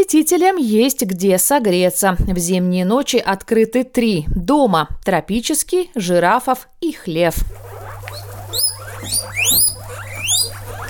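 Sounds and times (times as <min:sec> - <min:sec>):
speech: 0:00.0 - 0:07.7
guinea pigs squeaking: 0:07.0 - 0:10.8.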